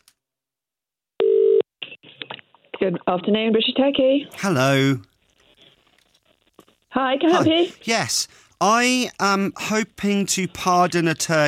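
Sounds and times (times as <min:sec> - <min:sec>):
telephone call being dialed: 0:01.2 - 0:01.6
speech: 0:02.8 - 0:05.1, 0:07.0 - 0:11.4.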